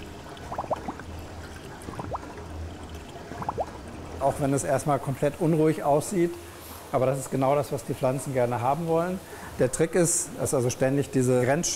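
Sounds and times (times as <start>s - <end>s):
water moving in wave tanks: 0.0s - 9.6s
speech: 4.2s - 11.7s.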